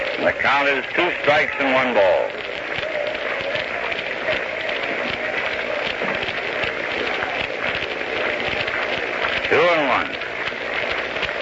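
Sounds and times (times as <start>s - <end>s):
half-hearted hand clapping from baseball crowd: 0.0s - 11.4s
speech: 0.2s - 2.5s, 9.5s - 10.2s.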